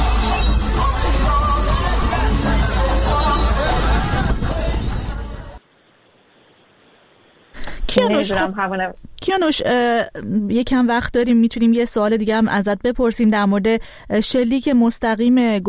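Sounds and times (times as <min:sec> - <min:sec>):
crowd in Zanjan celebrating and cheering in the street: 0:00.0 - 0:05.6
speech: 0:08.1 - 0:15.6.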